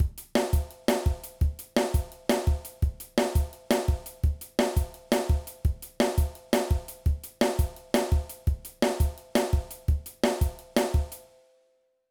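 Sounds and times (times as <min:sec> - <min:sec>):
drum and bass drum patterns: 0:00.0 - 0:11.3.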